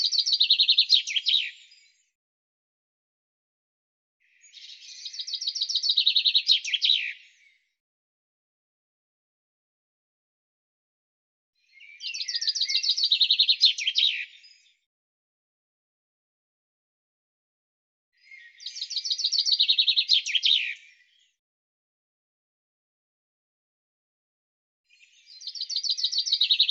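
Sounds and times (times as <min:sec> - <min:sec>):
bird song: 0:00.0 - 0:02.2, 0:04.2 - 0:07.8, 0:11.6 - 0:14.9, 0:18.1 - 0:21.4, 0:24.8 - 0:26.6.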